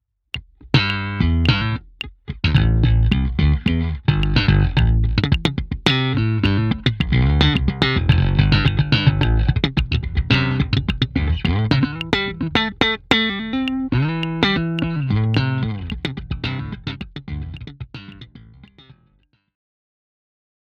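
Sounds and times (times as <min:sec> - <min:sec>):
bass track playing: 0:00.6 - 0:18.4
drum kit playing: 0:02.6 - 0:05.7.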